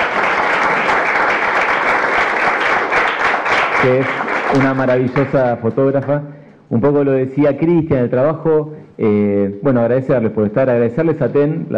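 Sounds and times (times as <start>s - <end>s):
audience applause at a book presentation honoring a photographer: 0.0s - 5.4s
speech: 3.8s - 11.7s.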